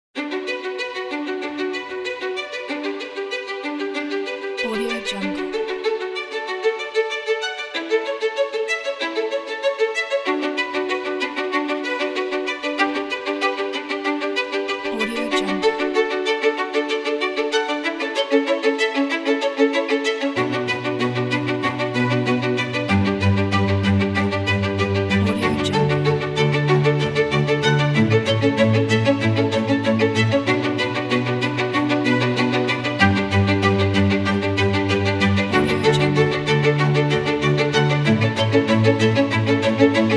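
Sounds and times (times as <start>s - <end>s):
inspiring chamber cinematic violins: 0.2s - 40.1s.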